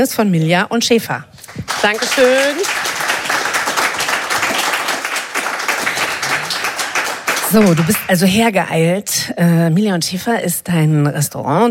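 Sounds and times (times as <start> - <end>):
speech: 0.0 - 2.9, 7.5 - 11.6
audience applause: 1.4 - 8.4.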